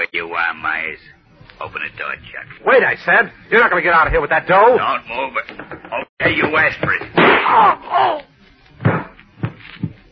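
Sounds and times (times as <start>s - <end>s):
speech: 0.3s - 9.0s
gun firing: 7.2s - 7.6s.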